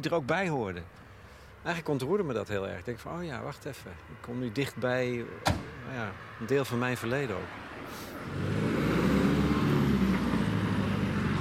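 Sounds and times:
speech: 0.0s - 1.0s, 1.6s - 8.4s
heavy military vehicles driving past: 3.2s - 11.3s.

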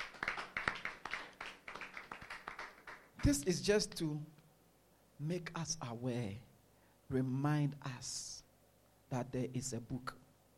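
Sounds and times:
audience clapping: 0.0s - 3.4s
speech: 3.2s - 4.4s, 5.2s - 6.5s, 7.1s - 8.4s, 9.1s - 10.2s.

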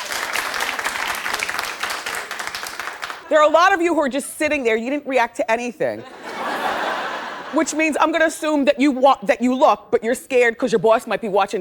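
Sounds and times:
audience applause: 0.0s - 3.3s
speech: 3.3s - 6.2s, 7.5s - 11.6s
laughter: 6.0s - 7.8s.

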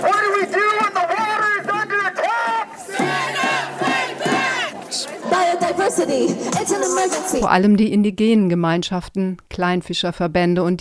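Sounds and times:
protest crowd chanting in the street: 0.0s - 7.4s
speech: 6.0s - 10.7s.

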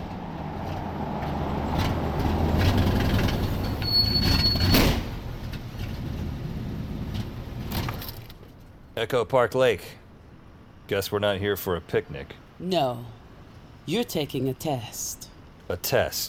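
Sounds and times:
loud old station wagon driving: 0.0s - 16.2s
thin high-pitched squeal: 3.4s - 4.8s
speech: 9.0s - 10.0s, 10.9s - 13.2s, 13.8s - 16.2s.

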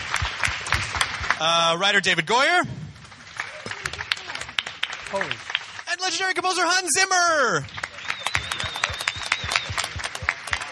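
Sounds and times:
press audience applause: 0.0s - 10.7s
speech: 1.4s - 2.8s, 5.1s - 7.8s
faint high whistling tone: 7.8s - 10.1s.

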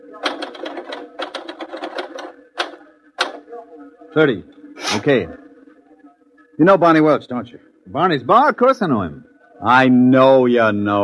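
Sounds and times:
typewriter keys clattering: 0.2s - 2.8s
speech: 4.2s - 5.4s, 6.6s - 11.0s.

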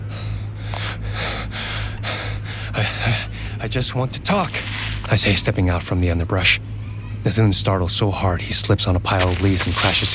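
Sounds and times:
heavy panting breathing after running: 0.1s - 3.6s
speech: 3.7s - 10.1s.

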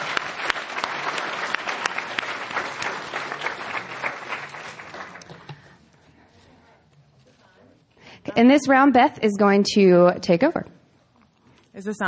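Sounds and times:
audience applause: 0.0s - 5.7s
speech: 8.4s - 10.6s, 11.8s - 12.0s.

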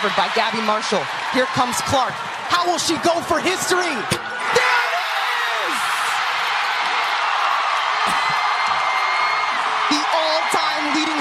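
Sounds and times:
speech: 0.0s - 4.8s
arena crowd cheering at basketball game: 0.0s - 11.1s
whoops and yells from basketball arena crowd: 4.4s - 11.1s.

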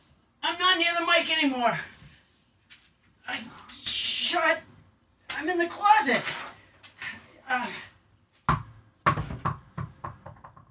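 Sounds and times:
speech: 0.8s - 1.9s, 4.3s - 4.7s, 5.4s - 6.5s, 7.5s - 7.9s
dog's ball bouncing on floor: 8.4s - 10.6s.

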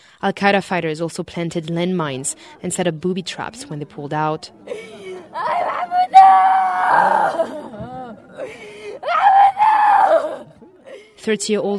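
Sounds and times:
speech: 0.2s - 10.5s, 11.2s - 11.7s
laughter: 2.3s - 11.1s
sister wailing as his body is lowered into the ground: 4.4s - 11.1s.

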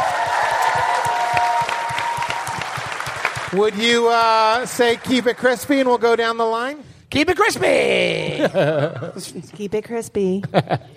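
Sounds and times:
audience applause: 0.0s - 6.1s
speech: 3.5s - 10.9s
laughter: 8.1s - 9.6s, 10.4s - 10.9s.

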